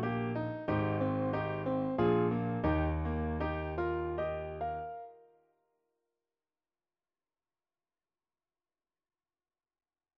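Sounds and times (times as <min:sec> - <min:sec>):
piano: 0:00.0 - 0:05.4.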